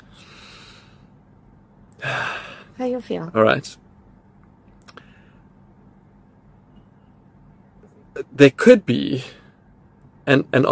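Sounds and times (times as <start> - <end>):
deep breath: 0.1 - 1.2, 2.0 - 2.8, 5.0 - 5.5
speech: 2.0 - 3.8, 8.4 - 9.4, 10.3 - 10.6.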